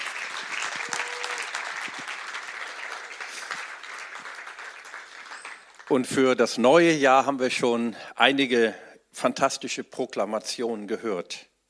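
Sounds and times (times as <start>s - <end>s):
audience applause: 0.0s - 6.2s
speech: 5.9s - 11.5s.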